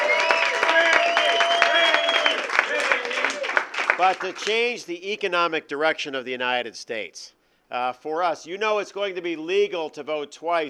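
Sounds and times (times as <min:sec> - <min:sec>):
audience applause: 0:00.0 - 0:04.7
speech: 0:04.0 - 0:10.6.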